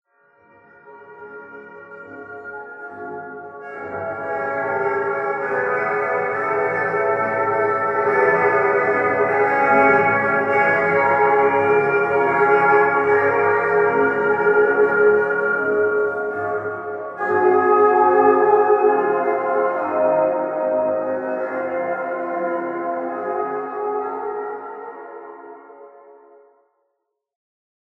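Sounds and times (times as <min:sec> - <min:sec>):
jazz music: 0:03.6 - 0:25.9.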